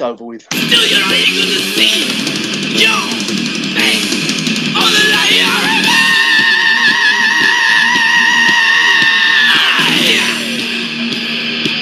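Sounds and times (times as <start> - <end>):
speech: 0.0 - 4.1
mellow phased guitar riff: 0.5 - 11.7
person screaming: 5.4 - 10.6.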